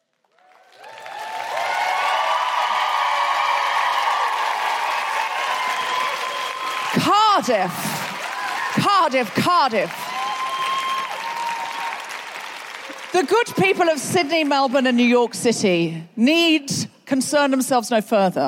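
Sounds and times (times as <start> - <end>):
audience applause on the clapometer: 0.0 - 15.1
audience whooping: 0.3 - 13.8
speech: 7.4 - 8.0, 8.8 - 10.0, 13.2 - 18.4.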